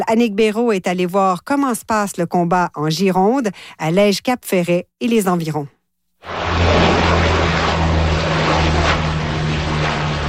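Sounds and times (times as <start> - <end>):
speech: 0.1 - 7.0
Canadair water-bomber plane flying overhead: 6.2 - 10.2.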